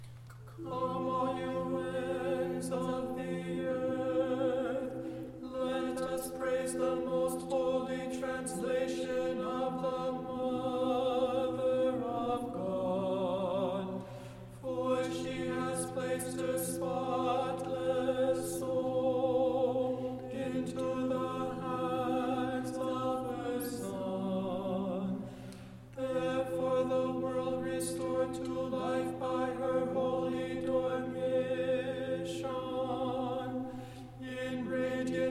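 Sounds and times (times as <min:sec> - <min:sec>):
tenor chanting sticheron in tone three: 0:00.5 - 0:14.0, 0:14.6 - 0:25.3, 0:25.9 - 0:35.2.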